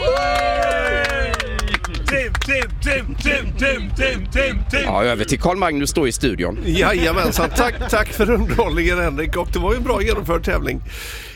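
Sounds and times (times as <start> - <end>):
audience applause: 0.0 - 3.3
laughter: 0.7 - 4.9, 6.5 - 9.2
speech: 2.8 - 11.3.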